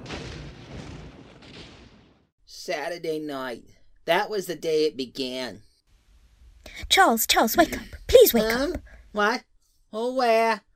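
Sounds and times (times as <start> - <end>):
thunder: 0.0 - 2.3
speech: 2.6 - 5.7, 6.7 - 10.7.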